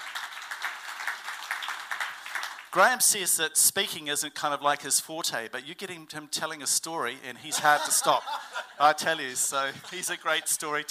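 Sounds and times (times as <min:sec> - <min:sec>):
audience applause: 0:00.0 - 0:02.8
speech: 0:02.8 - 0:10.8
laughter: 0:07.5 - 0:10.8.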